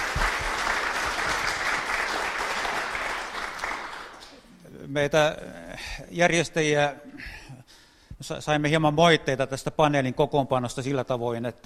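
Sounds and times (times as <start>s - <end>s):
audience applause: 0.0s - 4.4s
speech: 4.9s - 7.4s, 8.2s - 11.6s.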